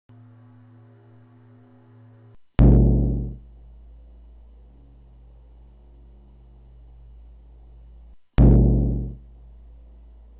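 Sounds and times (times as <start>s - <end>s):
bass drum: 2.6s - 3.4s, 8.4s - 9.2s.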